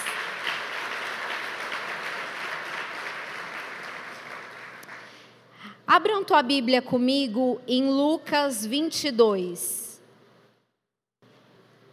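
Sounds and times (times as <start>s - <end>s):
audience applauding: 0.0s - 5.3s
speech: 6.0s - 9.8s.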